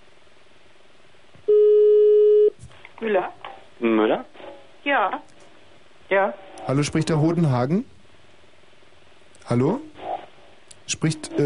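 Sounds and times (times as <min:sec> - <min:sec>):
electronic telephone line connecting tone: 0:01.5 - 0:02.6
speech: 0:06.2 - 0:08.0, 0:09.5 - 0:09.9, 0:10.9 - 0:11.4.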